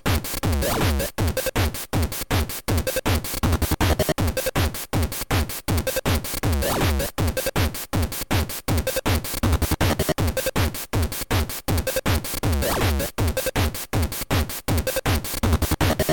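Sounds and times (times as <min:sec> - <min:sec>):
music: 0:00.0 - 0:16.1.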